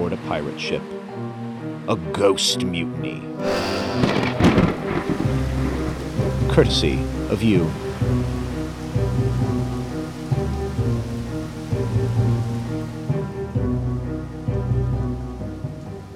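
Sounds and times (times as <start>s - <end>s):
speech: 0.3s - 4.6s, 6.4s - 8.4s
tonal drone: 3.4s - 6.1s
steady rain: 4.8s - 16.1s.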